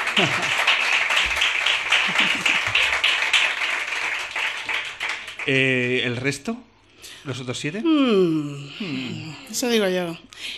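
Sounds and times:
laughter: 0:00.0 - 0:00.8, 0:01.9 - 0:03.1
crowd applauding: 0:00.0 - 0:06.2
speech: 0:00.2 - 0:00.6, 0:05.5 - 0:10.5.

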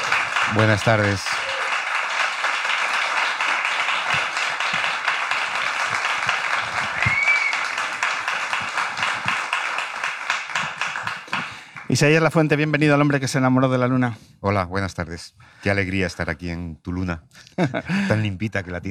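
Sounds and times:
audience applause: 0:00.0 - 0:12.2
speech: 0:00.5 - 0:01.4, 0:11.9 - 0:18.8
laughter: 0:17.5 - 0:18.4.

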